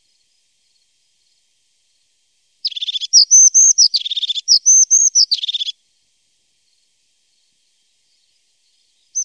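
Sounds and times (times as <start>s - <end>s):
crested tit making high thin notes and buzzy trills: 2.6s - 5.8s, 9.0s - 9.2s.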